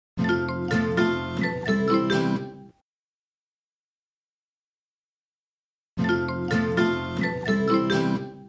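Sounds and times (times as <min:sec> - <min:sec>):
ringtone: 0:00.2 - 0:02.8, 0:06.0 - 0:08.4.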